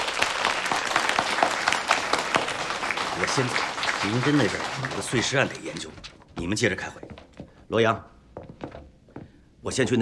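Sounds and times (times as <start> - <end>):
applause: 0.0 - 6.0
speech: 3.2 - 7.0, 7.7 - 8.1, 9.6 - 9.9.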